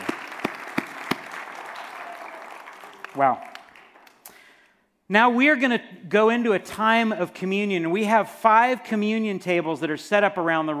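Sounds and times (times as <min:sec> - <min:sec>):
audience clapping: 0:00.0 - 0:04.6
speech: 0:03.2 - 0:03.5, 0:05.1 - 0:10.7.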